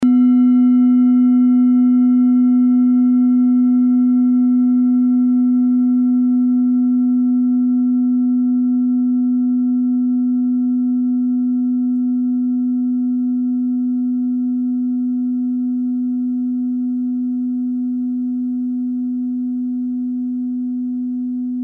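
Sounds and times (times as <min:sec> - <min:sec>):
set of singing bowls: 0:00.0 - 0:21.6.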